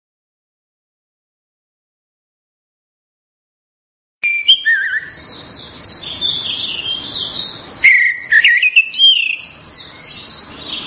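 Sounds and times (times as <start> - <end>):
orange-headed thrush song of slurred whistles: 4.2 - 5.1, 7.8 - 9.4.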